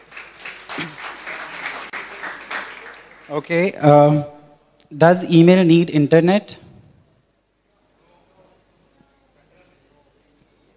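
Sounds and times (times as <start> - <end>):
audience clapping: 0.0 - 3.8
speech: 3.3 - 4.3, 4.9 - 6.6.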